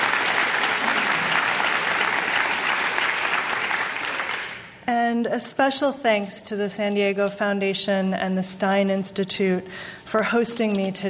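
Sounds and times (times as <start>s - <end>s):
audience round of applause: 0.0s - 4.7s
speech: 5.1s - 11.0s.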